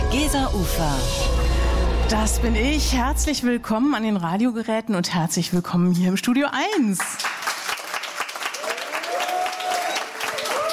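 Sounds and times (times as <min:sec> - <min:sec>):
speech: 0:00.1 - 0:07.3
studio audience applauding: 0:07.0 - 0:10.7
whoops and cheers: 0:08.5 - 0:10.7.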